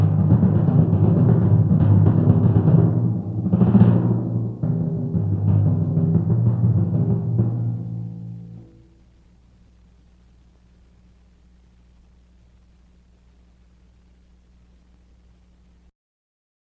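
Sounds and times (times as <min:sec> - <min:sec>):
timpani: 0:00.0 - 0:09.1.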